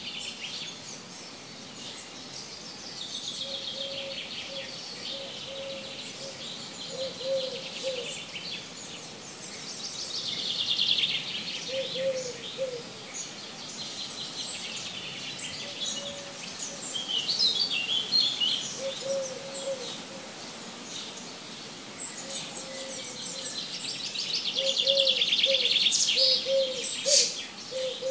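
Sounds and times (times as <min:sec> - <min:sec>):
birds twittering and trilling: 0:00.1 - 0:28.0
low cooing: 0:05.2 - 0:08.1, 0:11.7 - 0:12.9, 0:18.8 - 0:20.3, 0:24.6 - 0:28.0.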